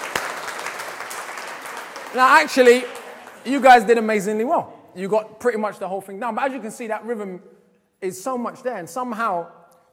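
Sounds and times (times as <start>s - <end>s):
audience applause: 0.0s - 3.7s
speech: 2.1s - 9.6s.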